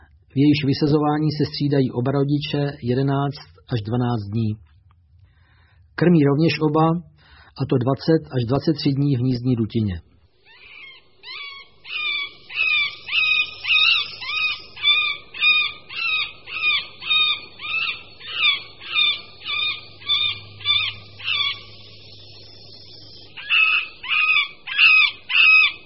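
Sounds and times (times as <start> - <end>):
faint low hum: 0.0 - 25.8
speech: 0.4 - 4.7, 6.0 - 10.1
Middle spotted woodpecker call: 10.4 - 25.8.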